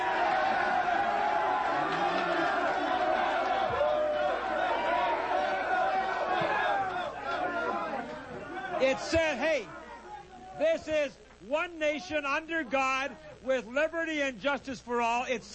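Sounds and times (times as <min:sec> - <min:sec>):
audience applauding: 0:00.0 - 0:08.2
audience shouting: 0:00.0 - 0:10.6
speech: 0:09.0 - 0:09.8, 0:10.6 - 0:15.5.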